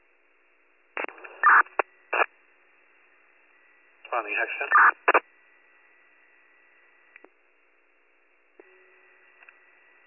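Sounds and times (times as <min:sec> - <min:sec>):
radio static: 0:01.0 - 0:02.3, 0:04.1 - 0:05.3
speech: 0:04.2 - 0:05.2.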